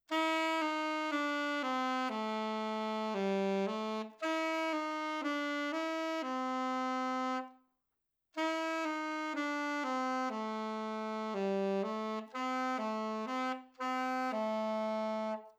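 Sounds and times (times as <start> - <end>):
saxophone with Yamaha 4C mouthpiece: 0.0 - 7.6, 8.4 - 15.5.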